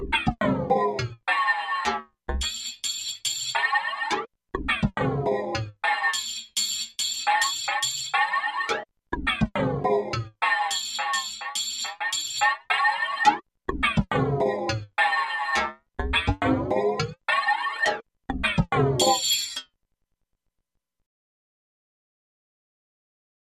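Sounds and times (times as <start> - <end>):
rhythm: 0.1 - 14.9, 15.5 - 17.2, 18.4 - 19.6.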